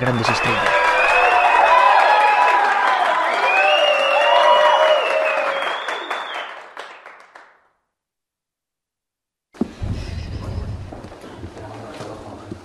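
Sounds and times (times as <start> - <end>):
cheering in a nitrate-town theatre: 0.0 - 7.6
applause in a nitrate-town theatre: 0.0 - 7.8.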